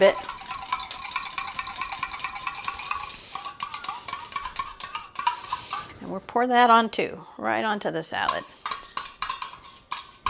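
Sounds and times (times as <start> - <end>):
speech: 0.0 - 0.3, 6.2 - 8.6
whisking salad dressing: 0.0 - 5.9, 8.3 - 10.2.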